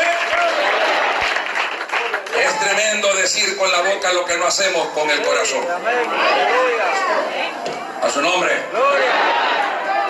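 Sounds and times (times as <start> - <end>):
audience applause: 0.0 - 3.3
speech: 2.7 - 9.6.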